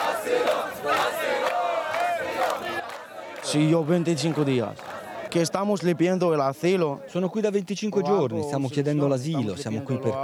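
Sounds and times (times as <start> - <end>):
crowd of migrants shouting in protest: 0.0 - 6.2
speech: 3.5 - 10.2.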